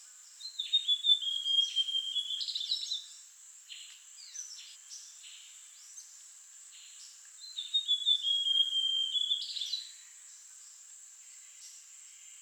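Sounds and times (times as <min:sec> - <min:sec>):
Amazonian grosbeak Cyanoloxia rothschildii singing a sliding warbled whistled phrase: 0:00.5 - 0:02.8, 0:07.6 - 0:09.8.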